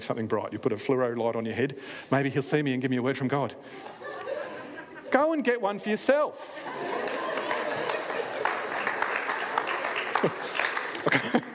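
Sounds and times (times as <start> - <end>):
speech: 0.0 - 4.3, 5.1 - 7.0
laughter: 3.7 - 5.4, 6.4 - 11.5
audience clapping: 6.8 - 11.5.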